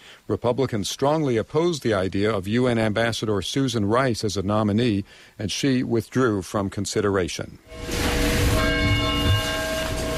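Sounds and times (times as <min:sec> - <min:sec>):
speech: 0:00.3 - 0:08.0
church bells tolling in mourning in Newtown, Connecticut: 0:07.7 - 0:10.1.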